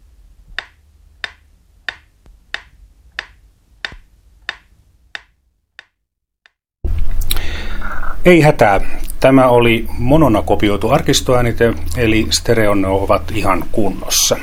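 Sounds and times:
metronome ticking: 0.5s - 6.0s
speech: 8.2s - 14.4s.

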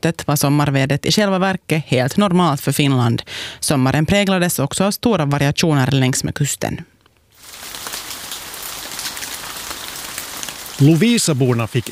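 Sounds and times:
speech: 0.0s - 6.9s, 10.8s - 11.9s
rain falling: 7.3s - 11.9s.

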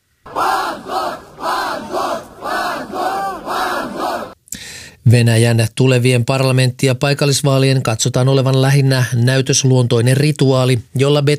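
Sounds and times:
crowd shouting shame outside courthouse: 0.3s - 4.4s
speech: 5.1s - 11.3s.

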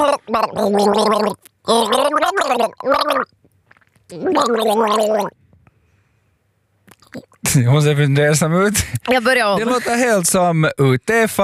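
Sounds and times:
person gargling water while humming a tune: 0.0s - 3.4s, 4.1s - 5.4s, 6.9s - 7.4s
speech: 0.0s - 3.4s, 4.1s - 5.4s, 7.1s - 11.4s.

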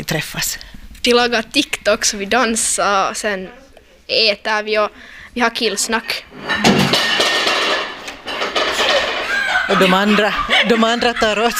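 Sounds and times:
speech: 0.1s - 7.2s, 9.7s - 11.5s
plate falling to the floor without breaking: 6.3s - 9.6s
laughter: 8.7s - 11.5s.

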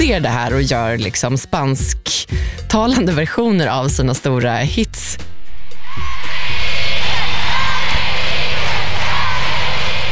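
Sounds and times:
speech: 0.1s - 5.3s
large crowd of teenage girls screaming in an arena: 5.8s - 10.0s.

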